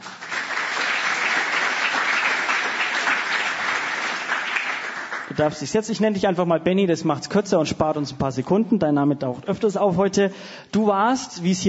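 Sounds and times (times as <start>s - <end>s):
audience applause: 0.0s - 5.4s
speech: 5.4s - 11.6s.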